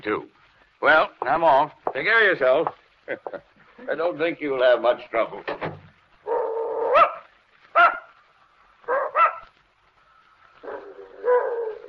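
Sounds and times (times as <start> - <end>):
speech: 0.0 - 5.7
dog barking: 6.3 - 8.2, 8.8 - 9.5, 10.6 - 11.8.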